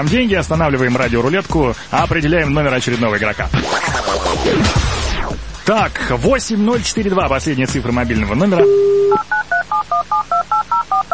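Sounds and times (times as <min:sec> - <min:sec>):
speech: 0:00.0 - 0:04.8, 0:05.7 - 0:09.3
telephone number dialed with DTMF tones during a radio phone-in game: 0:08.6 - 0:11.1.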